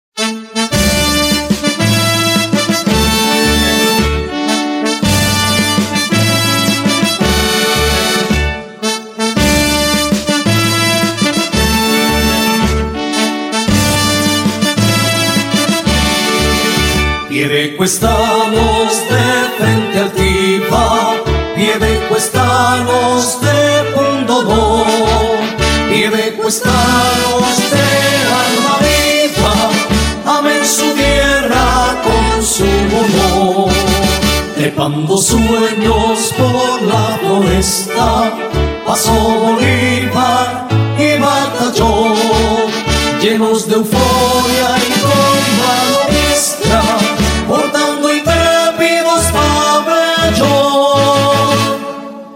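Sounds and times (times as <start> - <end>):
town anthem: 0.9 - 52.3.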